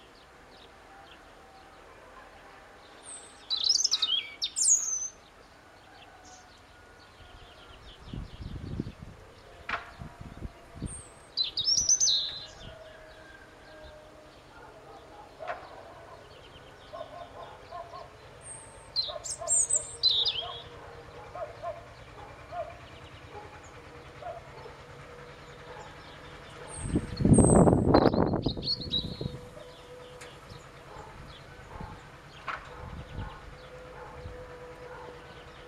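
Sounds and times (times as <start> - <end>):
European robin singing: 2.8 - 5.3, 7.4 - 12.9, 13.7 - 35.6.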